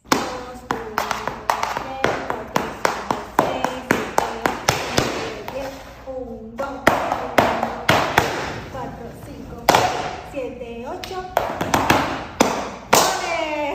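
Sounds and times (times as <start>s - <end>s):
rapid flamenco heel tapping taconeo: 0.1s - 5.8s, 6.7s - 8.6s, 9.7s - 10.2s, 11.0s - 13.4s.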